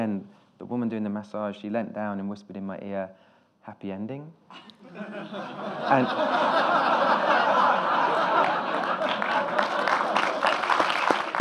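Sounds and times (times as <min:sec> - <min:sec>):
speech: 0:00.0 - 0:08.8
audience chuckles and laughter: 0:04.6 - 0:10.9
audience clapping: 0:07.4 - 0:11.4.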